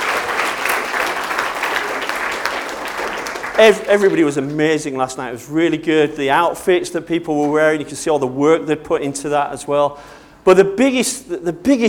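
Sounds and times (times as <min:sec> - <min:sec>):
audience applause: 0:00.0 - 0:04.4
speech: 0:03.6 - 0:11.8.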